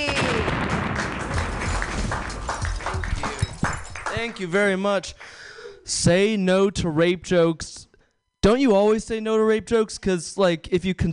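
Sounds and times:
audience clapping wildly: 0.0s - 5.4s
speech: 4.2s - 11.1s.

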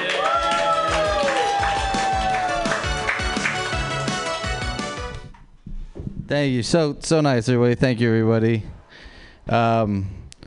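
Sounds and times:
audience clapping at a comedy workshop show: 0.0s - 5.3s
speech: 6.3s - 8.8s, 9.5s - 10.2s.

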